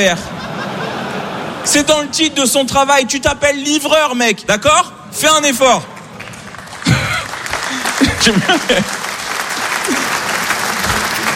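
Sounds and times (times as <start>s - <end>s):
speech: 0.0s - 0.4s, 1.6s - 5.9s, 8.2s - 9.0s
laughter: 0.0s - 2.6s, 6.8s - 11.3s
audience applause: 5.9s - 11.3s.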